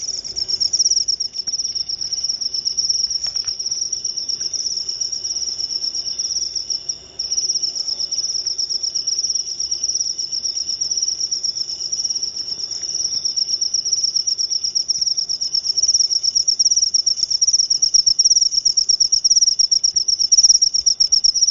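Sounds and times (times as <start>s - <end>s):
cricket trilling: 0.0s - 21.4s.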